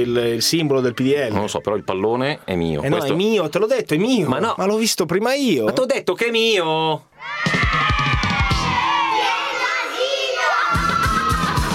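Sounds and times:
speech: 0:00.0 - 0:07.6
children shouting and quarreling in a kindergarten: 0:07.2 - 0:11.7.

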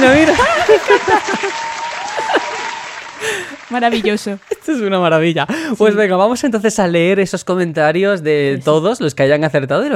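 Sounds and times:
applause sound effect: 0:00.0 - 0:05.4
speech: 0:03.8 - 0:09.9.

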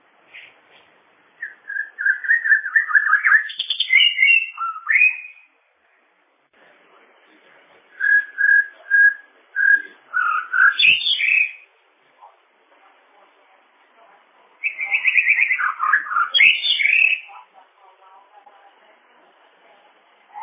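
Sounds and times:
bird singing whistles: 0:01.4 - 0:05.5, 0:08.0 - 0:11.6, 0:14.6 - 0:17.3.

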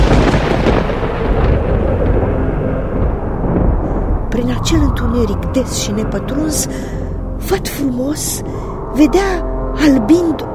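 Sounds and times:
storm thunder rumbling: 0:00.0 - 0:10.1
speech: 0:04.7 - 0:10.5.

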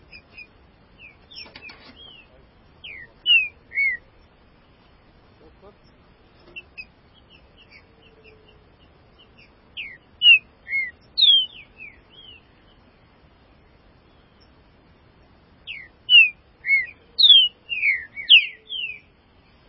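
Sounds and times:
green-winged saltator singing: 0:00.1 - 0:04.1, 0:09.3 - 0:12.4, 0:15.7 - 0:19.1.

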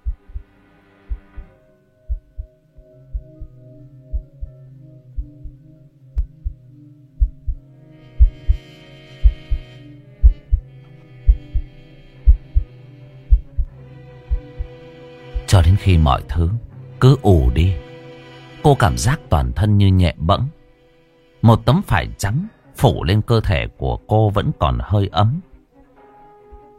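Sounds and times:
woman's loud low pounding heartbeat: 0:00.0 - 0:00.5, 0:01.1 - 0:01.5, 0:02.1 - 0:02.5, 0:03.1 - 0:04.6, 0:05.2 - 0:05.6, 0:06.2 - 0:06.6, 0:07.2 - 0:07.6, 0:08.2 - 0:08.6, 0:09.2 - 0:10.7, 0:11.3 - 0:12.7, 0:13.3 - 0:14.8, 0:15.4 - 0:15.6
speech: 0:15.8 - 0:17.9, 0:18.6 - 0:20.6, 0:21.4 - 0:25.5.

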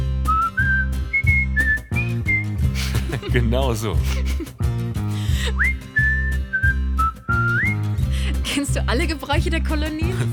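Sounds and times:
person whistling a carefree tune: 0:00.2 - 0:02.7, 0:05.5 - 0:08.0
laughter: 0:02.7 - 0:04.6, 0:09.9 - 0:10.3
speech: 0:03.2 - 0:04.6, 0:08.5 - 0:10.3.

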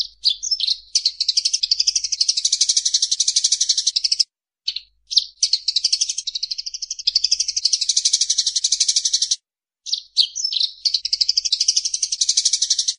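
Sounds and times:
bird song of high sharp chirps: 0:00.0 - 0:12.9.

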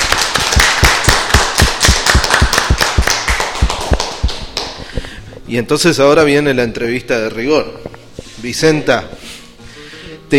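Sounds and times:
audience applause: 0:00.0 - 0:04.9
speech: 0:05.5 - 0:09.2.

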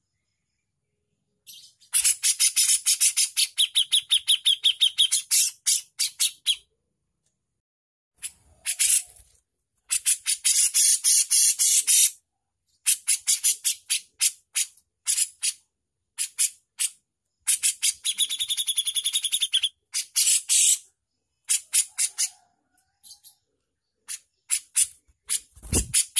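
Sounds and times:
Javan bush lark song with high sharp chirps and buzzy bursts: 0:00.0 - 0:06.8, 0:09.9 - 0:26.1.

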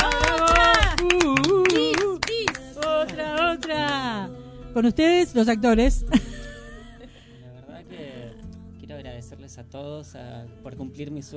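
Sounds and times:
crowd cheering: 0:00.0 - 0:03.9
applause of dense hand claps: 0:00.0 - 0:04.1
speech: 0:04.8 - 0:06.3, 0:09.8 - 0:11.3.

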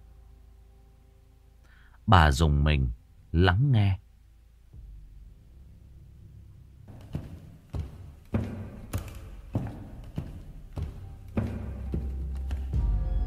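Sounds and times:
speech: 0:02.1 - 0:04.0
man's heavy footsteps thudding at night: 0:04.8 - 0:12.9.

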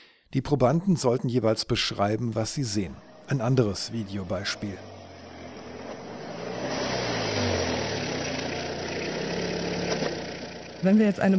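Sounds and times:
speech: 0:00.3 - 0:05.0, 0:10.8 - 0:11.3
car driving along a street: 0:01.9 - 0:11.3.

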